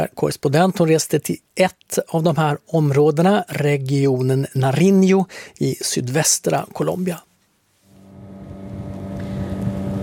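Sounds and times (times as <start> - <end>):
speech: 0.0 - 7.3
motorboat engine on the Patía river near Tumaco in southern Colombia: 8.0 - 10.0
wind noise: 8.0 - 10.0.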